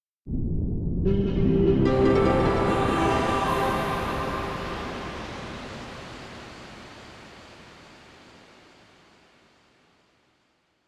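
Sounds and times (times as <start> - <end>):
space jingle: 1.1 - 5.3.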